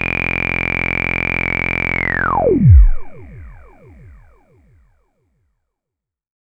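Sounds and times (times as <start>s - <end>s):
low-pass filter sweep: 0.1s - 4.8s.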